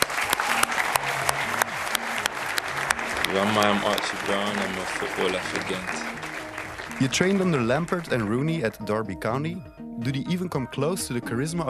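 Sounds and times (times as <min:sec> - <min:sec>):
live audience applauding: 0:00.0 - 0:08.4
speech: 0:03.3 - 0:06.3, 0:07.0 - 0:11.6.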